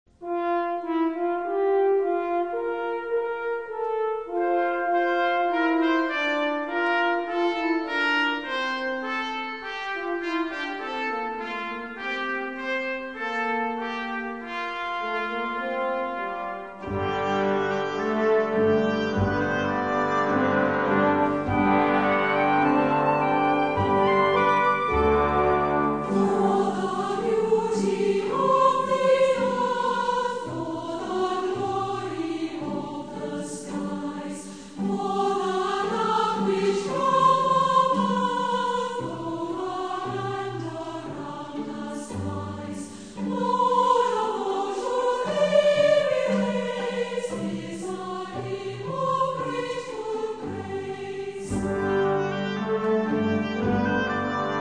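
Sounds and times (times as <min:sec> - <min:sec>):
orchestra playing hymns: 0:00.2 - 0:54.6
choir singing hymns: 0:00.9 - 0:09.2, 0:13.8 - 0:54.6.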